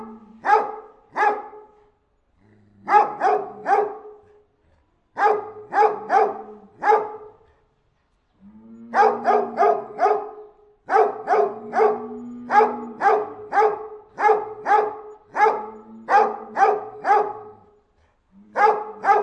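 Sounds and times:
Anatolian Shepherd dog barking deeply: 0.0 - 1.8, 2.8 - 4.2, 5.2 - 7.4, 8.9 - 17.7, 18.5 - 19.2.

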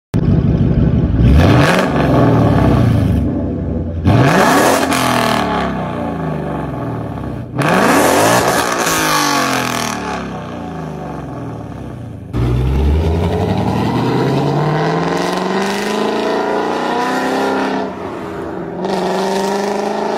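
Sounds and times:
Ford Mustang engine: 0.2 - 20.1.

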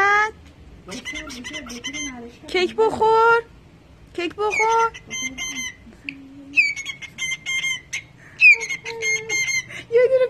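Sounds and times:
low steady hum-like tone: 0.0 - 10.2
cockatiel uttering grating screech calls: 0.9 - 2.2, 4.5 - 5.8, 6.6 - 9.7
speech: 1.3 - 3.6, 4.2 - 6.2.

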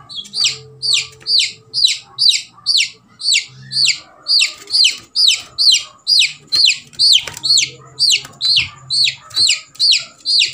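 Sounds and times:
chick peeping: 0.0 - 10.5.

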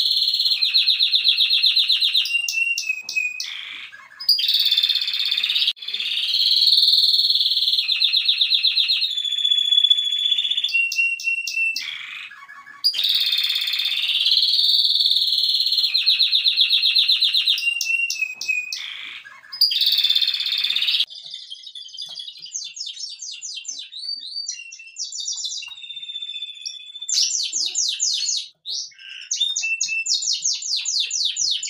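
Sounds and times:
canary song: 0.0 - 31.6.

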